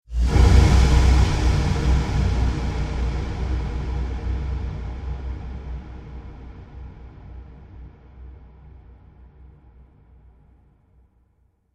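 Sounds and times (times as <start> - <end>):
dark cinematic hits: 0.2 - 7.9.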